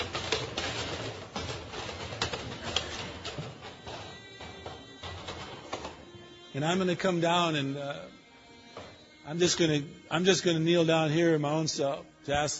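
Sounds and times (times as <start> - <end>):
chairs clacking as audience stands up: 0.0 - 10.9
speech: 6.6 - 8.2, 9.3 - 12.5.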